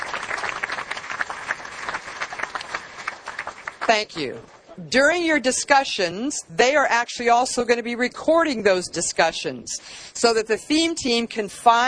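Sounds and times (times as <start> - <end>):
crowd applause: 0.0 - 4.0
speech: 3.9 - 11.8.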